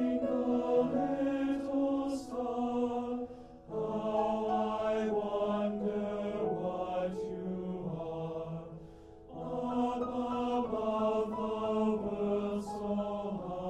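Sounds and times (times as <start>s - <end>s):
TTBB male choir singing a nursery rhyme: 0.0s - 13.6s
piano: 0.0s - 13.6s.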